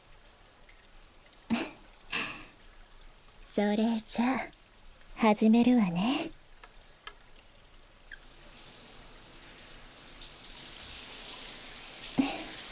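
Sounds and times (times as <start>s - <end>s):
speech: 3.6s - 4.6s, 5.2s - 6.4s
hot water poured over hair during a hair wash: 8.0s - 12.7s.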